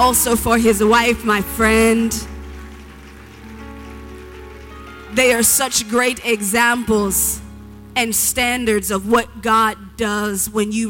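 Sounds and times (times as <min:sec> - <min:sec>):
speech: 0:00.0 - 0:02.3, 0:05.1 - 0:07.4, 0:08.0 - 0:10.8
audience clapping in praise: 0:01.4 - 0:07.5.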